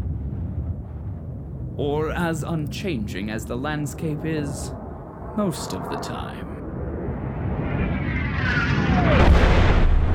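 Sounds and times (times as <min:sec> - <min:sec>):
meteorite impact explosion: 0:00.0 - 0:05.5, 0:06.6 - 0:10.1
speech: 0:01.8 - 0:04.8, 0:05.4 - 0:06.5
thin descending whistling tone: 0:07.6 - 0:09.3.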